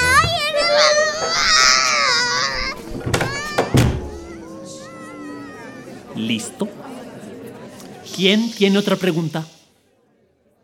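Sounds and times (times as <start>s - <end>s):
child crying in a high-pitched wail and sobbing: 0.0s - 6.2s
speech: 6.3s - 6.9s, 8.2s - 9.6s.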